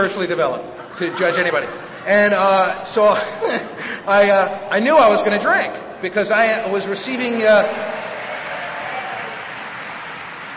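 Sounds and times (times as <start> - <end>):
speech: 0.0 - 8.0
laughter: 0.7 - 3.9
audience applause: 7.8 - 10.5.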